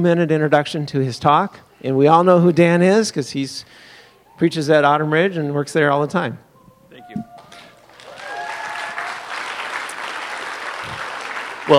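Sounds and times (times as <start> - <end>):
speech: 0.0 - 6.5
audience applause: 7.4 - 11.7.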